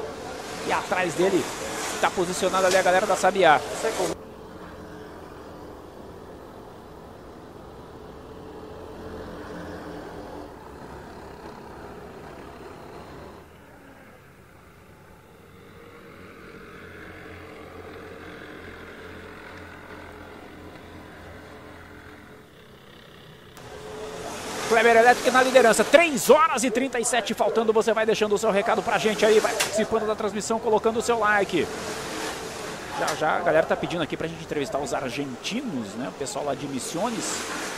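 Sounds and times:
racing kart engines passing on track: 0.0s - 37.7s
speech: 0.7s - 4.1s, 24.8s - 32.0s, 33.0s - 37.6s.

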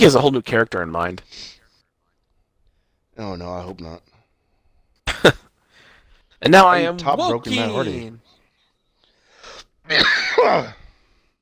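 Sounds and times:
speech: 0.0s - 1.6s, 3.2s - 4.1s, 5.2s - 5.5s, 6.4s - 8.2s, 9.9s - 10.8s
coughing: 5.0s - 5.5s, 9.8s - 10.8s.

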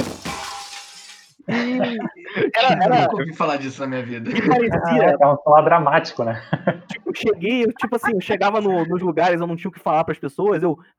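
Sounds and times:
glass object shattering like a vase: 0.0s - 1.4s
laughter: 1.5s - 5.2s, 6.2s - 9.1s
speech: 1.8s - 10.9s.

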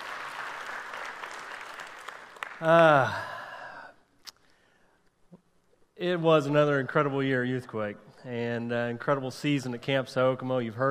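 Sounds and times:
audience applause: 0.0s - 3.4s
speech: 2.6s - 3.3s, 6.0s - 10.8s.

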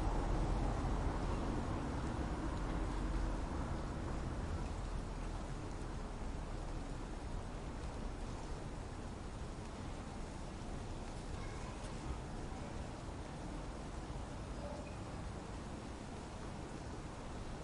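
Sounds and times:
low traffic rumble: 0.0s - 17.6s
rain over a city: 0.0s - 17.6s.

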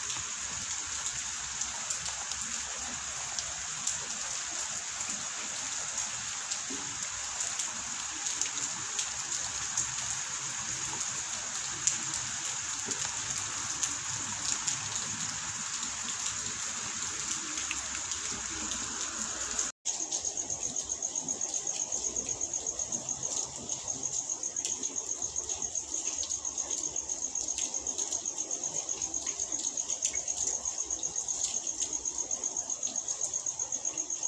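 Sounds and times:
rain falling: 0.0s - 34.2s.

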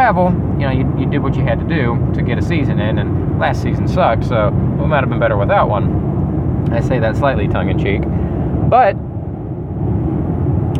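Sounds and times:
road rumble from inside a car driving down the road: 0.0s - 10.7s
speech: 0.1s - 9.1s, 9.8s - 10.0s.

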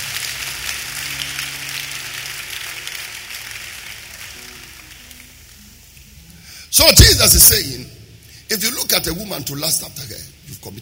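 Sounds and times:
audience clapping: 0.0s - 5.6s
speech: 6.7s - 7.8s, 8.5s - 10.8s.

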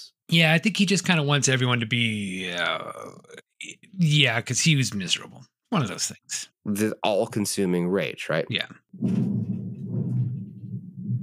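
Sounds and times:
speech: 0.0s - 9.6s
low rolling thunder: 9.0s - 11.2s.

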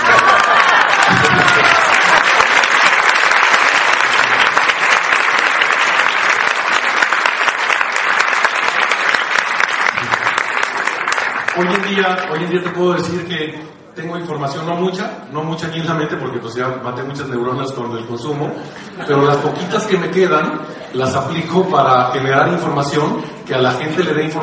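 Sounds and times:
faint whoops: 0.0s - 2.4s
audience applause: 0.0s - 12.8s
speech: 12.0s - 24.4s.

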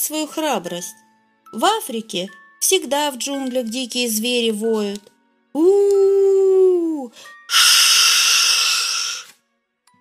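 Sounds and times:
speech: 0.0s - 7.7s
cobras and boas hissing: 7.5s - 9.3s.

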